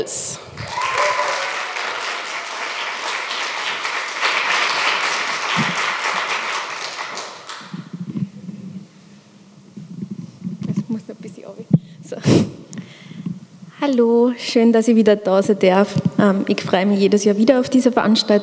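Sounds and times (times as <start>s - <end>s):
speech: 0.0s - 0.7s, 13.8s - 18.4s
audience applause: 0.4s - 7.9s.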